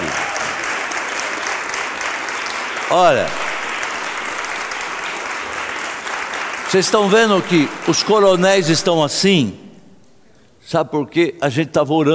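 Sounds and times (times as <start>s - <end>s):
audience applause: 0.0s - 9.2s
speech: 2.9s - 3.5s, 6.7s - 9.6s, 10.7s - 12.1s.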